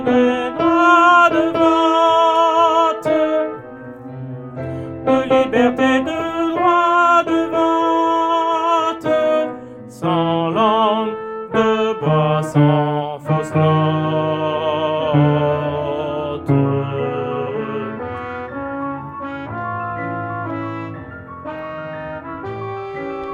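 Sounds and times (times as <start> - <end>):
tenor singing: 0.0 - 3.9, 5.0 - 19.8.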